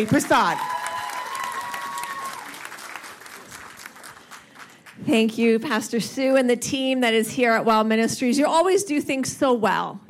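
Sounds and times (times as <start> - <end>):
speech: 0.0 - 0.8, 5.1 - 10.0
audience applause at a church service: 0.0 - 5.0.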